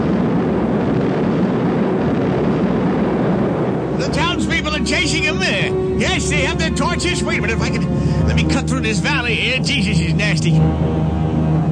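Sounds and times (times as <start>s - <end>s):
thunder rumbling: 0.0s - 11.6s
speech: 4.8s - 11.2s.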